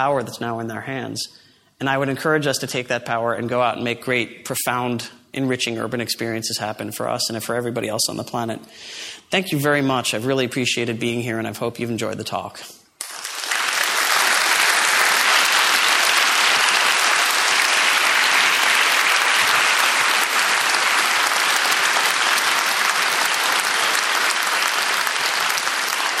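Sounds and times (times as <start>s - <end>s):
speech: 0.0s - 12.8s
audience applause after talk: 13.0s - 26.1s.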